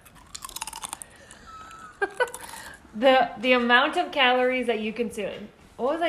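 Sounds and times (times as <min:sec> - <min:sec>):
someone crunching into a chip: 0:00.0 - 0:02.8
speech: 0:02.0 - 0:06.0.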